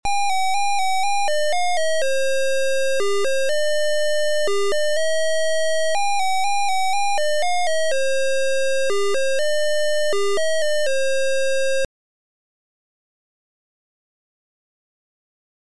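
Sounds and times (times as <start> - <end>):
melody: 0.2 - 11.9.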